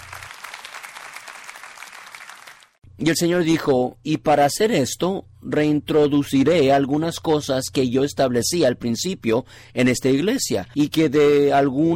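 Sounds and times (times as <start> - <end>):
audience applause: 0.0 - 2.8
speech: 3.0 - 11.9.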